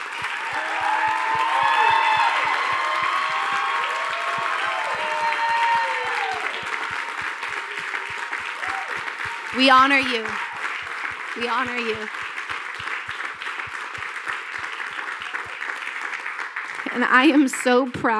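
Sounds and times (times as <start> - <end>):
cheering and whooping voices: 0.0 - 12.1
audience applauding: 0.0 - 18.1
speech: 9.6 - 10.4, 11.4 - 12.3, 17.0 - 18.1.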